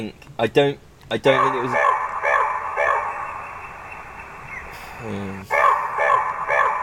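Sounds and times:
speech: 0.0s - 1.9s, 5.0s - 5.6s
raven croaking harshly: 1.2s - 6.8s
low murmuring: 4.0s - 6.0s.

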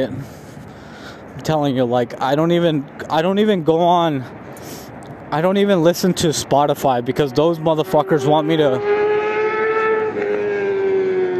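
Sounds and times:
speech: 0.0s - 0.4s, 1.4s - 4.4s, 5.3s - 8.9s
fast motorcycle passing by: 7.7s - 11.3s.

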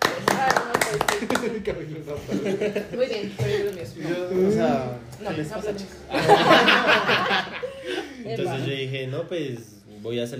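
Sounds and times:
audience clapping for the men: 0.0s - 1.8s
speech: 0.9s - 7.6s, 8.2s - 10.3s
laughter: 1.2s - 3.8s, 6.1s - 8.4s.

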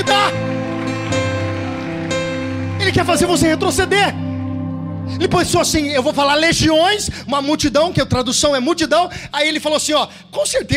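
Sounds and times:
audience applauding: 0.0s - 4.1s
speech: 2.9s - 4.2s, 5.1s - 10.7s.

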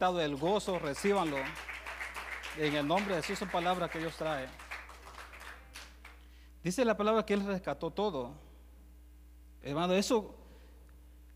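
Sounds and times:
speech: 0.0s - 1.7s, 2.6s - 4.6s, 6.6s - 8.4s, 9.6s - 10.4s
audience applause: 0.6s - 6.2s.

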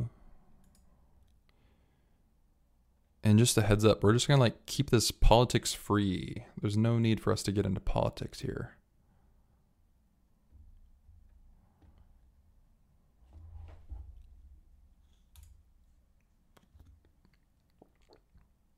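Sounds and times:
speech: 3.3s - 8.8s
big swig of water: 16.6s - 18.7s.

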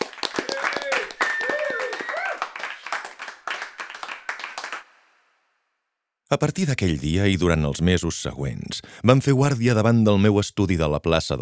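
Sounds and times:
people applauding fervently: 0.0s - 5.1s
speech: 6.3s - 11.4s.

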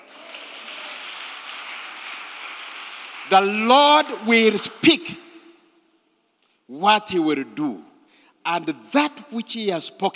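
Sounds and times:
audience clapping hands: 0.0s - 5.2s
speech: 3.3s - 5.2s, 6.7s - 10.1s.

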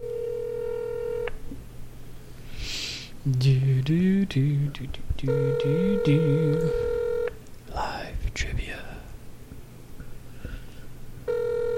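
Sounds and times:
telephone ringing during a live call-in trivia show: 0.0s - 1.3s, 5.3s - 7.3s, 11.3s - 11.7s
speech: 3.2s - 6.9s, 8.4s - 8.8s.

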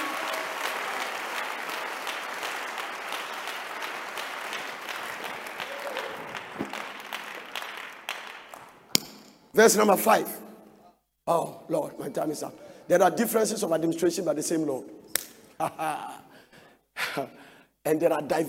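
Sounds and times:
audience clapping: 0.0s - 9.0s
speech: 9.6s - 10.4s, 11.3s - 15.0s, 15.7s - 16.2s, 17.2s - 18.4s.

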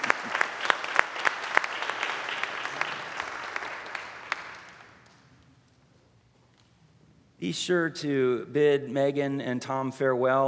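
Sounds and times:
audience applause: 0.0s - 5.2s
speech: 7.4s - 10.4s.

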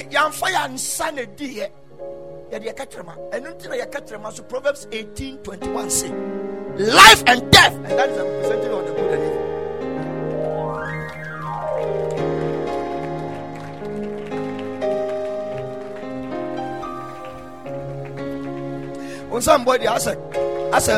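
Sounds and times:
speech: 0.0s - 9.4s, 19.4s - 20.9s
audience clapping: 10.0s - 20.9s.

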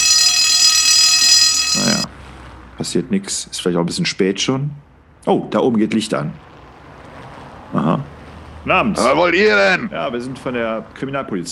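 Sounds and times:
doorbell ringing: 0.0s - 2.1s
speech: 2.8s - 6.5s, 7.7s - 11.5s.

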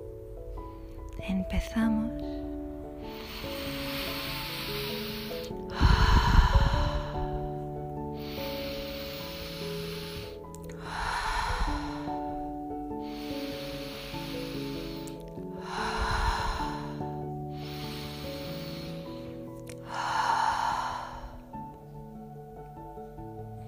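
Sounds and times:
quiet sustained musical drone: 0.0s - 23.6s
speech: 1.2s - 2.4s
slow deep breathing through nose and mouth: 2.8s - 22.1s.

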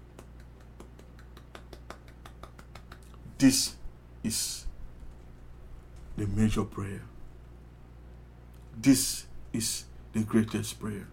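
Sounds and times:
audience clapping: 0.0s - 3.2s
speech: 3.4s - 4.7s, 6.2s - 7.1s, 8.8s - 11.1s.

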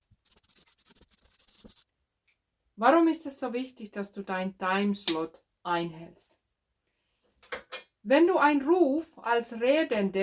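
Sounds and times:
pen writing large letters on paper: 0.1s - 1.8s
speech: 2.8s - 6.3s, 8.0s - 10.2s.

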